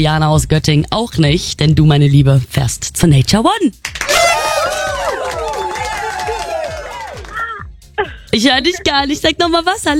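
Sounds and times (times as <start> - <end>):
speech: 0.0 - 4.9, 8.3 - 9.9
crowd cheering: 3.9 - 7.6.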